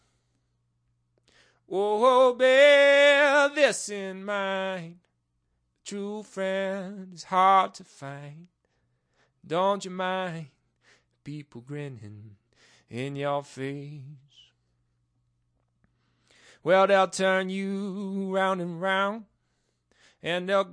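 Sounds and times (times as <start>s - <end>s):
person singing blues a cappella: 1.4s - 5.2s, 5.8s - 8.6s, 9.4s - 14.5s, 16.4s - 20.7s.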